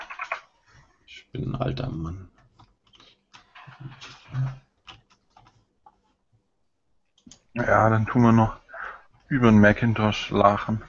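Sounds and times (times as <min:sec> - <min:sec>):
computer keyboard typing: 0:00.0 - 0:00.5, 0:02.4 - 0:06.0
speech: 0:01.3 - 0:02.4, 0:07.6 - 0:08.6, 0:09.3 - 0:10.8.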